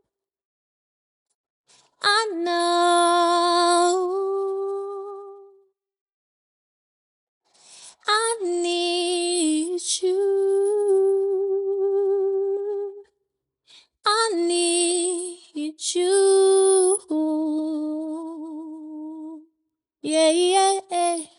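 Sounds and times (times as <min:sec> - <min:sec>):
a cappella pop R&B singing at 150 BPM in A minor: 0:02.0 - 0:05.5, 0:08.0 - 0:13.1, 0:14.0 - 0:19.4, 0:20.0 - 0:21.3.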